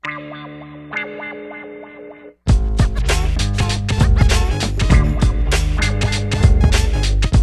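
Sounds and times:
hip-hop beat: 0:02.5 - 0:07.4.

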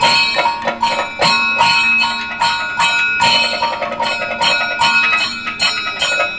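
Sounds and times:
Indian traditional kathak dance music: 0:00.0 - 0:06.3.

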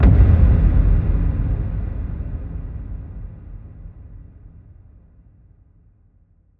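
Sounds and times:
impact: 0:00.0 - 0:05.0.

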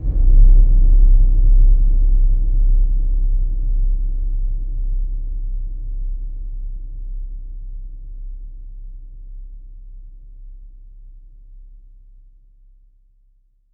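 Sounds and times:
big boom: 0:00.0 - 0:07.2.

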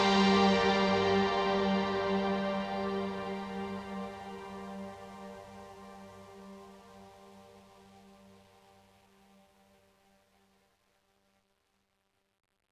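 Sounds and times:
synth pad in G: 0:00.0 - 0:08.8.

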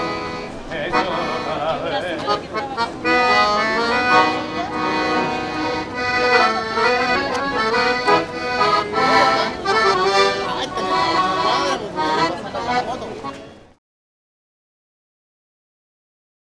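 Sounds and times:
salsa music: 0:00.0 - 0:09.9
laughter: 0:00.0 - 0:13.4.

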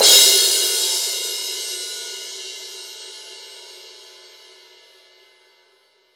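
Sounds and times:
18 crash cymbal: 0:00.0 - 0:03.7.

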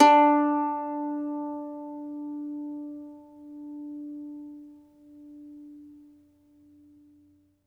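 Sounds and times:
mandolin plucked strings: 0:00.0 - 0:06.0.

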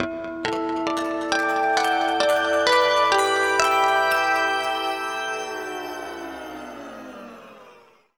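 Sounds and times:
guitar harmonic: 0:00.5 - 0:08.0.

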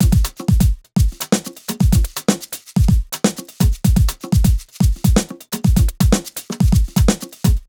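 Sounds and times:
broken beat music at 125 beats: 0:00.0 - 0:07.6.

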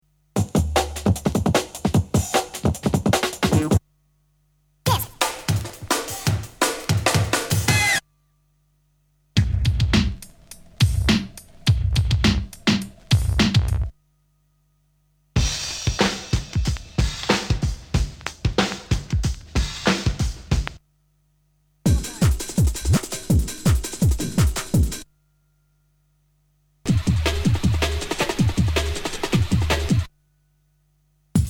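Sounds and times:
breakbeat drums: 0:00.4 - 0:03.8, 0:04.9 - 0:08.0, 0:09.4 - 0:13.9, 0:15.4 - 0:20.8, 0:21.9 - 0:25.0, 0:26.9 - 0:30.1.

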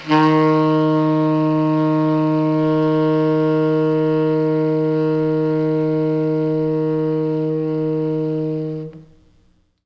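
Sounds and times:
tenor sax: 0:00.0 - 0:09.5.

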